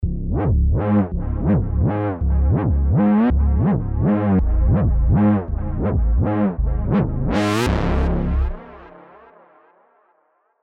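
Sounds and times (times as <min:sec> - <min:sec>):
reese bass on Diva synthesizer: 0:00.0 - 0:08.6.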